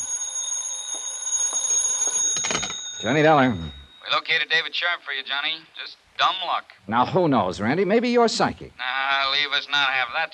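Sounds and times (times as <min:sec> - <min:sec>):
telephone ringing: 0:00.0 - 0:04.5
speech: 0:03.0 - 0:10.3.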